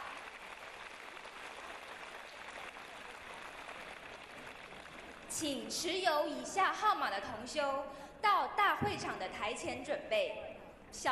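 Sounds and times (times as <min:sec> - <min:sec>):
warm audience applause: 0:00.0 - 0:05.4
speech: 0:05.4 - 0:11.0.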